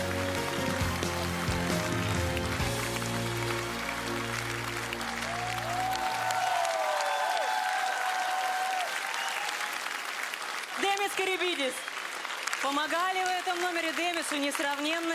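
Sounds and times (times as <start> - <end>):
audience applause: 0.0 - 15.1
speech: 12.7 - 15.1.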